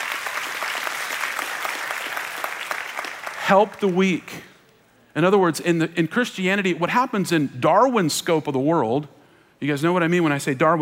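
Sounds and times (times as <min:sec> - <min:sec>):
audience clapping: 0:00.0 - 0:04.2
speech: 0:03.5 - 0:04.5, 0:05.2 - 0:10.8.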